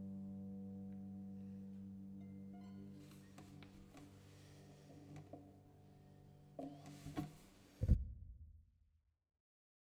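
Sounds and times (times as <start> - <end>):
cello: 0.0 - 7.8.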